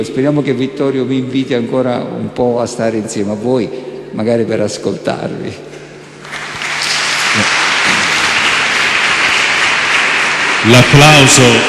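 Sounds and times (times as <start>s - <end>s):
speech: 0.0s - 5.8s, 10.6s - 11.6s
audience applause: 6.2s - 11.6s.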